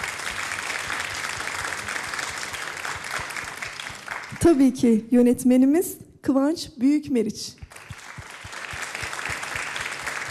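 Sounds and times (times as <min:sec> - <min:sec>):
audience applause: 0:00.0 - 0:04.6, 0:07.7 - 0:10.2
speech: 0:04.4 - 0:07.6.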